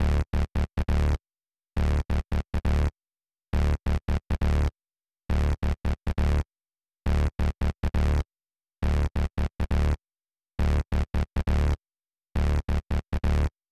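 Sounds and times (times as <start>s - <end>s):
bass: 0.0s - 1.2s, 1.8s - 2.9s, 3.6s - 4.7s, 5.3s - 6.5s, 7.1s - 8.2s, 8.8s - 10.0s, 10.6s - 11.8s, 12.4s - 13.5s.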